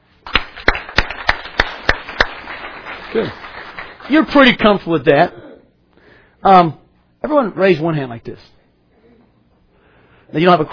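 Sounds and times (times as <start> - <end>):
audience clapping: 0.2 - 4.8
speech: 3.1 - 3.5, 4.1 - 5.4, 6.4 - 8.6, 10.3 - 10.7.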